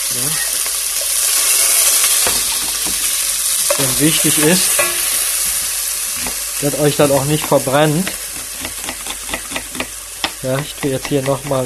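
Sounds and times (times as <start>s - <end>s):
food frying in a hot pan: 0.0s - 11.6s
speech: 0.1s - 0.6s, 3.8s - 4.9s, 6.6s - 8.2s, 10.4s - 11.6s
clinks and stirring knocks: 3.7s - 5.2s, 7.0s - 11.6s.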